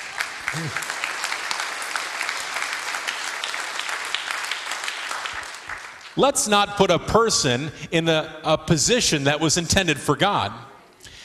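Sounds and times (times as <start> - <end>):
audience applause: 0.0 - 6.2
brief vocal sound: 0.5 - 0.8
speech: 0.5 - 1.0, 6.2 - 10.7.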